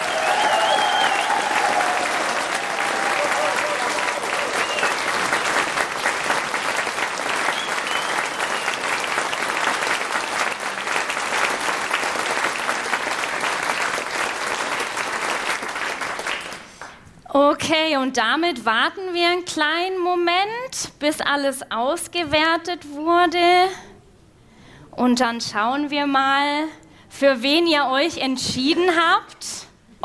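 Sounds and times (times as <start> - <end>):
loud sustained crowd applause: 0.0 - 17.0
speech: 18.0 - 23.8, 25.0 - 30.0.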